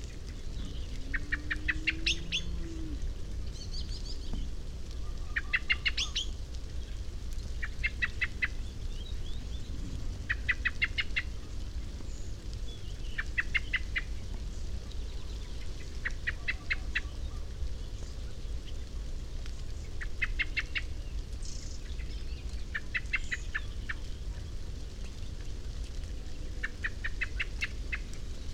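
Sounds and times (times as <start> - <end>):
low background rumble: 0.0 - 28.5
common blackbird chinking calls: 0.6 - 6.4, 7.6 - 9.6, 10.3 - 11.3, 12.1 - 14.2, 15.1 - 17.5, 20.0 - 24.1, 26.6 - 28.5.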